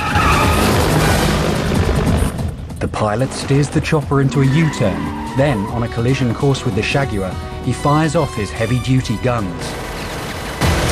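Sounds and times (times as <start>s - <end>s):
car tires skidding during sudden braking: 0.0s - 1.5s, 4.1s - 6.7s
car engine rumble: 0.0s - 10.9s
speech: 3.0s - 9.9s.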